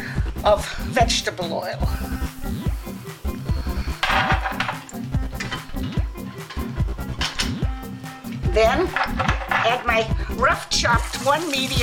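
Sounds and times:
speech: 0.5 - 2.6, 8.6 - 11.8
heavy pot clunking on stove: 4.0 - 7.6, 8.9 - 10.0.

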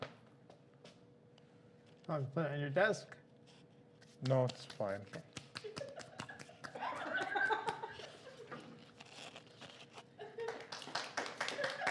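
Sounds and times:
speech: 2.1 - 3.2, 4.2 - 5.3
hands clapping: 4.2 - 8.0, 10.4 - 11.8
laughter: 5.6 - 8.7, 10.2 - 10.7, 11.5 - 11.8.

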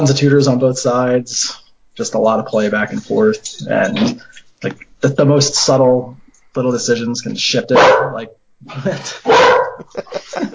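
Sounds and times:
speech: 0.0 - 10.5
dog barking: 7.7 - 8.2, 9.3 - 9.9
laughter: 8.7 - 10.5.

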